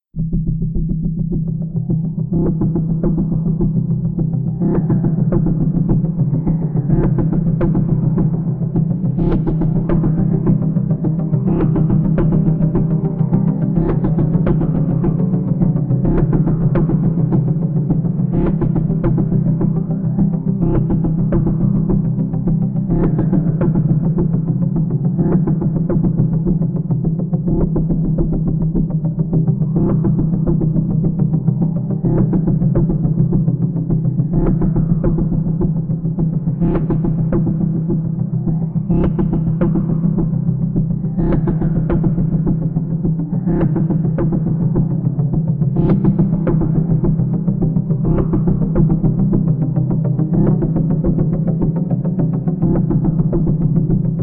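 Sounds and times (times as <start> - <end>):
loot ambient pulse: 0.2 - 54.2.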